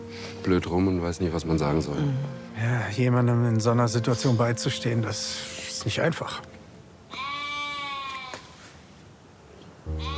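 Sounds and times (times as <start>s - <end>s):
speech: 0.4s - 6.5s
sheep bleating: 7.1s - 8.5s, 9.9s - 10.1s.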